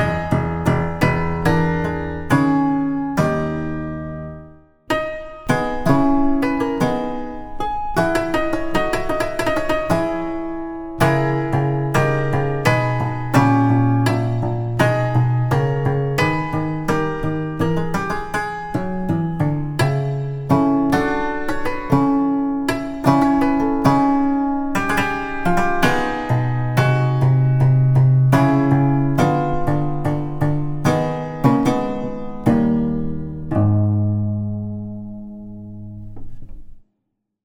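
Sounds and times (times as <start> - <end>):
Lutheal piano: 0.0 - 36.8.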